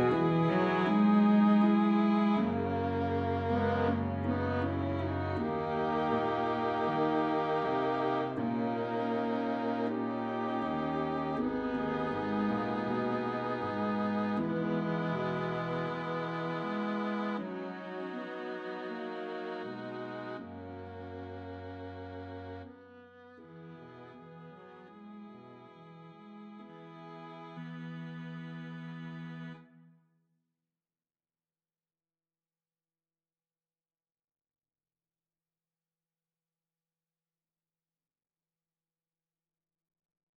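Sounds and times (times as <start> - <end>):
low musical accompaniment: 0.0 - 29.8.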